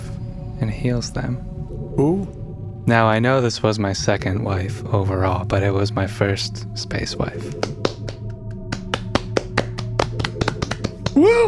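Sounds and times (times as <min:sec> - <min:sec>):
speech: 0:00.6 - 0:07.8, 0:11.2 - 0:11.4
applause: 0:07.5 - 0:11.2.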